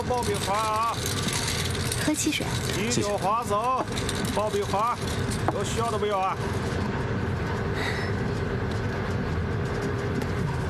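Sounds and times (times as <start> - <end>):
moving train on railway tracks: 0.0 - 10.6
speech: 0.1 - 1.3, 2.0 - 6.8.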